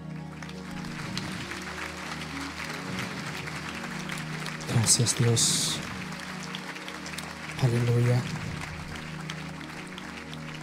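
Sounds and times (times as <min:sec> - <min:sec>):
audience clapping hands: 0:00.0 - 0:10.6
speech: 0:04.8 - 0:05.9, 0:07.6 - 0:08.4.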